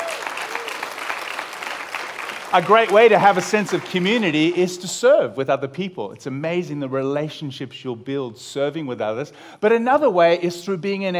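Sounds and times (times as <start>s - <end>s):
audience applause: 0.0s - 4.8s
speech: 2.5s - 11.1s.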